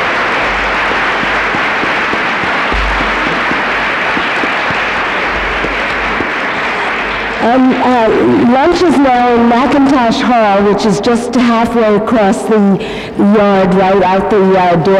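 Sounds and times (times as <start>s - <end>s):
sustained applause from a sizable audience: 0.0s - 8.3s
speech: 7.4s - 14.9s.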